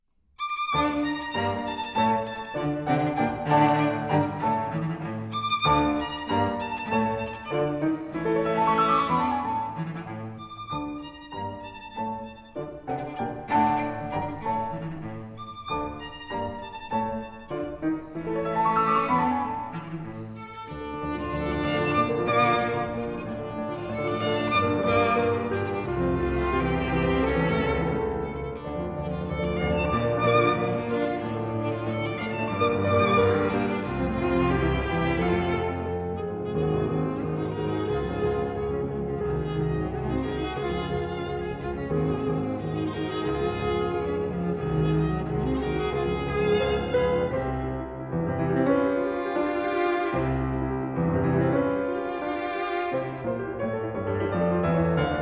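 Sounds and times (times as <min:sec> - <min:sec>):
piano trio: 0:00.4 - 0:55.1.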